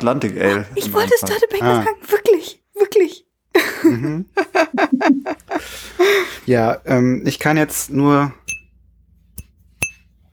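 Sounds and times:
speech: 0:00.0 - 0:02.6, 0:06.5 - 0:08.4
laughter: 0:03.6 - 0:05.8
glasses clinking in a toast: 0:08.5 - 0:08.7, 0:09.8 - 0:10.0.

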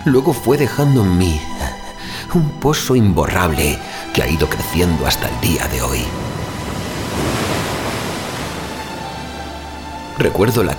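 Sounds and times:
speech: 0:00.0 - 0:01.6, 0:02.3 - 0:06.3, 0:10.2 - 0:10.7
sea waves washing against the shore: 0:04.6 - 0:10.7
wind hiss: 0:05.0 - 0:10.2.

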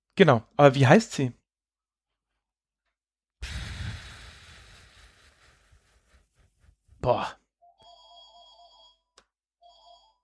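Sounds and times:
speech: 0:00.2 - 0:01.4, 0:07.0 - 0:07.4
telephone with a trilling bell ringing: 0:07.6 - 0:10.2.

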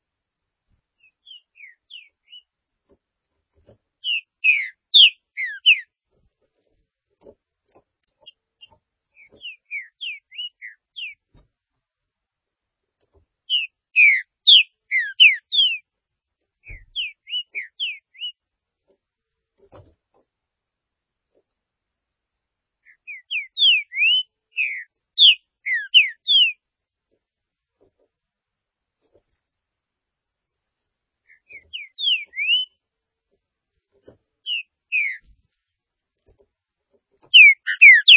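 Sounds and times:
green-winged saltator singing whistled phrases: 0:04.0 - 0:05.8, 0:09.2 - 0:11.2, 0:13.5 - 0:15.8, 0:16.7 - 0:18.4, 0:22.9 - 0:26.6, 0:31.3 - 0:32.8, 0:34.5 - 0:35.2, 0:37.3 - 0:38.1.

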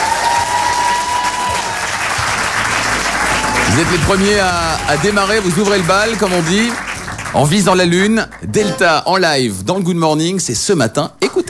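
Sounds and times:
live audience applauding a band taking the stage: 0:00.0 - 0:09.1
speech: 0:03.8 - 0:11.4.

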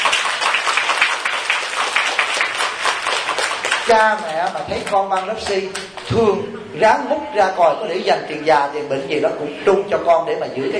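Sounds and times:
audience applause for the parents: 0:00.0 - 0:06.1
speech: 0:03.9 - 0:10.7.

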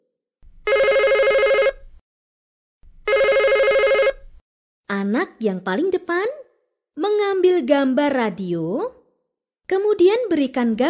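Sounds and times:
telephone bell ringing for a children's classroom story game: 0:00.7 - 0:01.8, 0:03.1 - 0:04.2
speech: 0:04.9 - 0:06.4, 0:07.0 - 0:09.0, 0:09.7 - 0:10.8.

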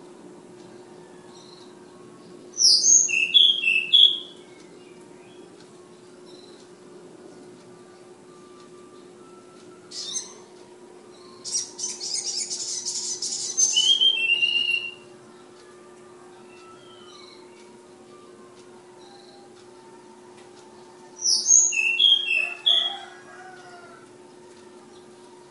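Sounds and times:
steady hum: 0:00.0 - 0:25.4
flowerpecker singing: 0:00.6 - 0:15.7, 0:16.4 - 0:20.0, 0:20.6 - 0:24.0.

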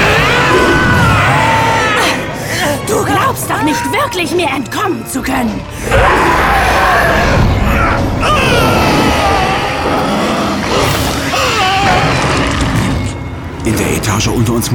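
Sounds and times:
two men screaming: 0:00.0 - 0:02.3, 0:05.8 - 0:12.5
predators roaring and crashing: 0:00.0 - 0:02.4, 0:05.8 - 0:13.2
speech: 0:03.7 - 0:07.4, 0:13.7 - 0:14.7.

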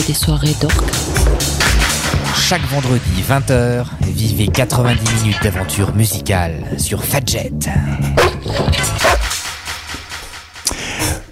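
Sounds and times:
speech: 0:00.0 - 0:01.4, 0:02.4 - 0:09.1
dog barking: 0:08.2 - 0:09.3.

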